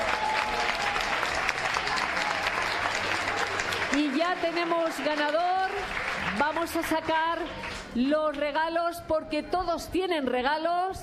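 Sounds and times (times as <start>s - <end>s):
audience applause: 0.0s - 7.9s
speech: 4.3s - 11.0s.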